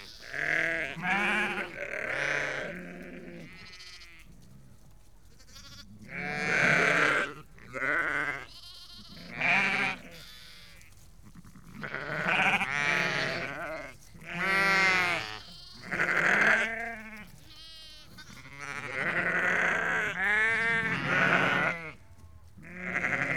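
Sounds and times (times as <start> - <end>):
sheep bleating: 0.0 - 4.3, 5.4 - 23.3.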